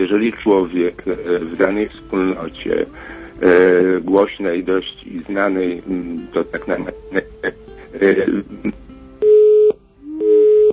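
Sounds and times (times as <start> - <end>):
voice: 0.0 - 6.9, 7.9 - 8.7
speech: 0.1 - 8.8
phone line busy tone beeps: 9.2 - 10.7
phone line noise: 9.2 - 10.7.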